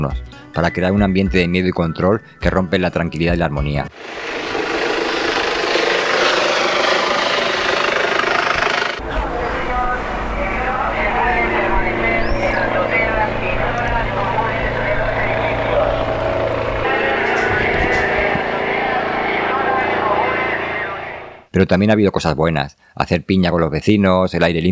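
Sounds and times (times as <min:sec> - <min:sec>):
speech: 0:00.0 - 0:04.2, 0:21.6 - 0:24.6
police helicopter droning overhead: 0:03.9 - 0:21.5
deep throbbing low rumble: 0:04.0 - 0:21.3
garbled police helicopter loudspeaker announcements: 0:09.0 - 0:21.4.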